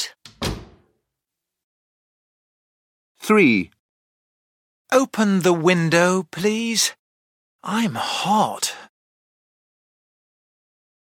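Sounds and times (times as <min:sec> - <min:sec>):
door closing thud: 0:00.2 - 0:01.0
speech: 0:03.2 - 0:03.8, 0:04.9 - 0:07.0, 0:07.6 - 0:08.8.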